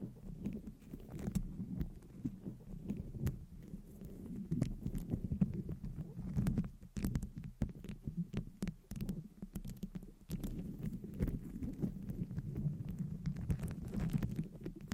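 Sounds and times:
faint steady hum: 0:00.0 - 0:14.9
long nails scratching a microphone: 0:00.0 - 0:14.9.

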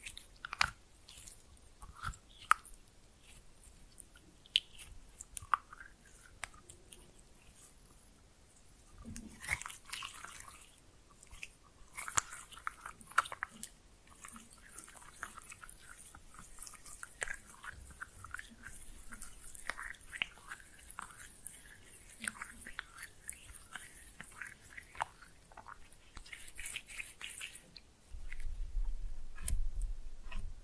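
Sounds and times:
slime being pressed and mixed, squelching and popping: 0:00.0 - 0:07.7, 0:08.9 - 0:30.5.

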